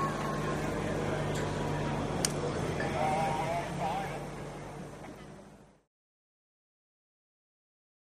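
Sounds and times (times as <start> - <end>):
hydroplane dock ambience: 0.1 - 5.6.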